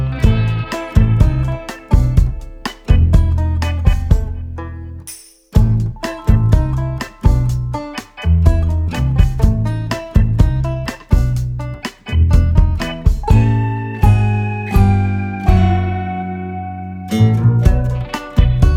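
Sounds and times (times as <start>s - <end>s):
comedy music score: 0.2s - 18.7s.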